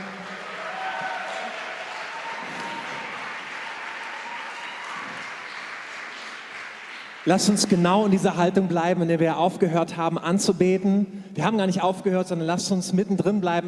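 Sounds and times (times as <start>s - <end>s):
crowd applauding: 0.0s - 8.3s
speech: 7.3s - 13.6s.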